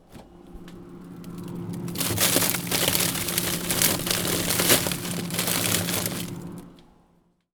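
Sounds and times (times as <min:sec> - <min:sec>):
foley sounds: 0:01.9 - 0:06.4.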